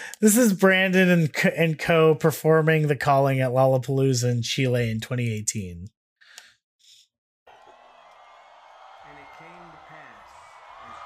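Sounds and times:
speech: 0.2 - 6.0
concert crowd cheering: 7.5 - 11.0.

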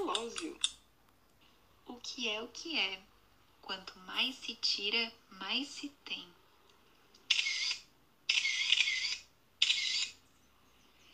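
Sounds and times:
speech: 2.2 - 3.1, 3.7 - 6.4
camera shutter clicks: 7.3 - 10.2.

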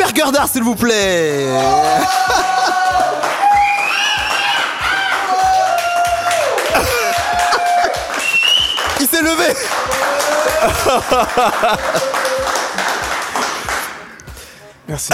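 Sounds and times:
speech: 0.2 - 2.8, 9.0 - 12.2, 14.9 - 15.1
laughter: 1.7 - 3.3, 6.4 - 8.4, 9.0 - 13.2
applause: 2.3 - 14.1.

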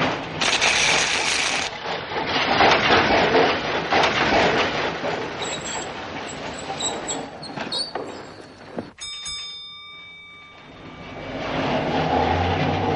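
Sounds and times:
tram stopping in a snowy Moscow street: 0.0 - 12.9
ringing metallic tone: 6.8 - 12.6.

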